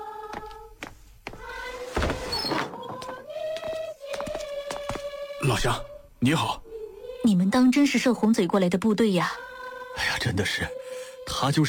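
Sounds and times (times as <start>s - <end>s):
wooden door opening: 1.8s - 3.2s
door hinges creaking: 1.9s - 3.1s
speech: 5.5s - 6.6s, 7.3s - 9.4s, 10.0s - 11.6s.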